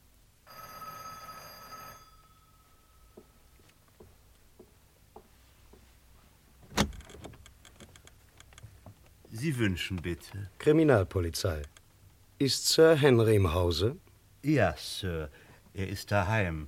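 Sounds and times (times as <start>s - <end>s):
electric doorbell ringing: 0.5s - 3.6s
soft taps: 3.2s - 5.9s
speech: 9.4s - 11.8s, 12.4s - 16.6s.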